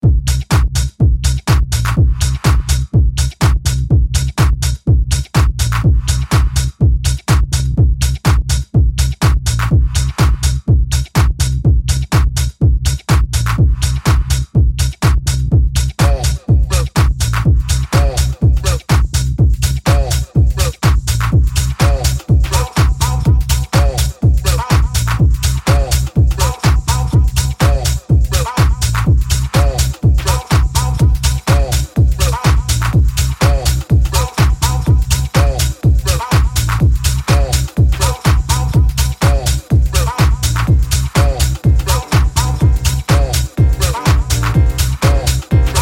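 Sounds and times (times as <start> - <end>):
jackin tech house music: 0.0 - 45.8.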